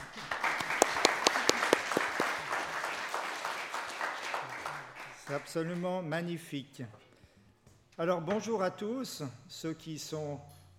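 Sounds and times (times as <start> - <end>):
applause: 0.0 - 5.9
speech: 5.3 - 7.0, 8.0 - 10.6.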